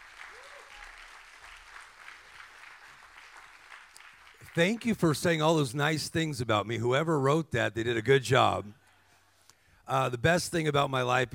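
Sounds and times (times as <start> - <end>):
audience clapping: 0.0 - 5.6
speech: 4.5 - 8.8, 9.9 - 11.3.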